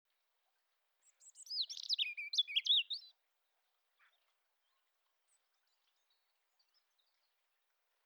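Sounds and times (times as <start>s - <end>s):
European robin song: 1.0s - 8.0s.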